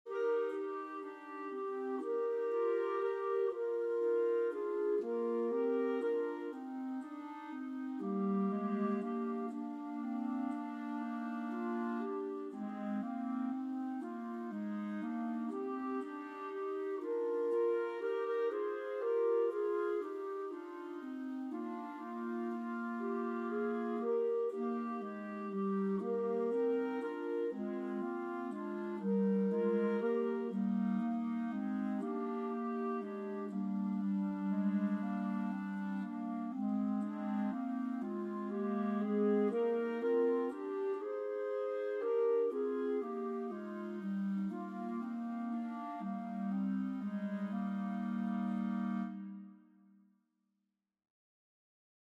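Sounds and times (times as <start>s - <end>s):
clarinet playing in E-flat major: 0.0s - 49.8s.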